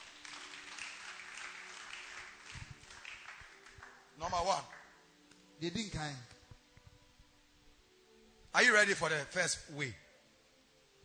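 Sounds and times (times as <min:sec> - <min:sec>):
audience clapping hands together: 0:00.0 - 0:05.0
speech: 0:04.2 - 0:04.8, 0:05.6 - 0:06.4, 0:08.5 - 0:10.0.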